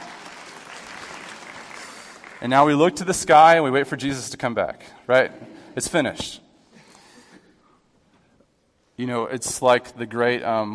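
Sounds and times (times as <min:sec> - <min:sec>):
audience applause: 0:00.0 - 0:02.5
speech: 0:02.4 - 0:06.4, 0:09.0 - 0:10.7.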